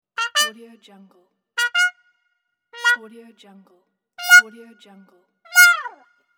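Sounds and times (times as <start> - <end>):
trumpet game win jingle: 0.2 - 0.6, 1.6 - 1.9, 2.8 - 3.0, 4.2 - 4.5, 5.5 - 6.0.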